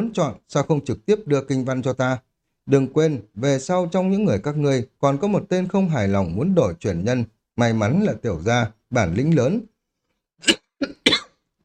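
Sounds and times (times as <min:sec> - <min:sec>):
speech: 0:00.0 - 0:09.7, 0:10.4 - 0:10.9
cough: 0:10.4 - 0:11.4.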